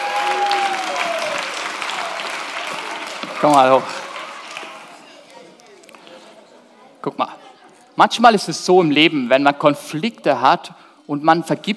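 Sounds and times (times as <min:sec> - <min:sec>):
audience applause: 0:00.0 - 0:05.4
speech: 0:03.4 - 0:04.0, 0:07.0 - 0:07.4, 0:08.0 - 0:11.7.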